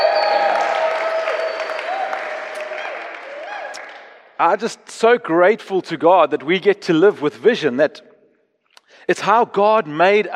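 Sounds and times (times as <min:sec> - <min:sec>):
audience clapping: 0:00.0 - 0:04.4
speech: 0:04.4 - 0:08.1, 0:09.0 - 0:10.3.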